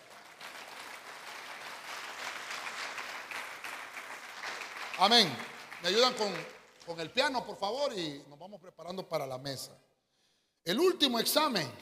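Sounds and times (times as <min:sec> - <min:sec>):
audience applauding: 0:00.0 - 0:07.4
speech: 0:05.0 - 0:09.8, 0:10.6 - 0:11.7.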